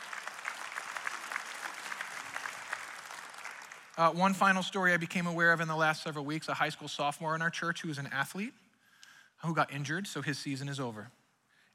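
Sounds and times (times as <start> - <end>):
audience clapping: 0.0 - 4.4
speech: 4.0 - 8.6, 9.4 - 11.2.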